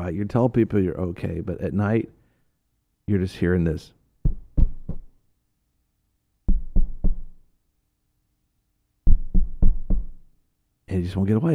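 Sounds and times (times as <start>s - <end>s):
speech: 0.0s - 2.2s, 3.1s - 4.0s, 10.9s - 11.5s
knocking on a door: 4.2s - 5.1s, 6.5s - 7.4s, 9.1s - 10.2s.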